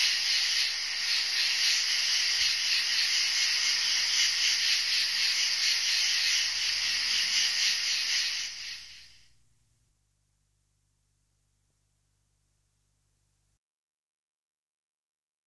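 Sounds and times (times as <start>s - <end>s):
insect pulsing trill: 0.0s - 9.2s.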